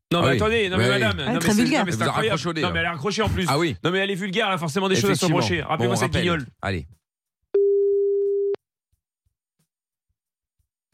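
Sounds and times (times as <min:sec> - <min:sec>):
speech: 0:00.1 - 0:07.0
telephone busy tone after a hang-up: 0:07.6 - 0:08.6.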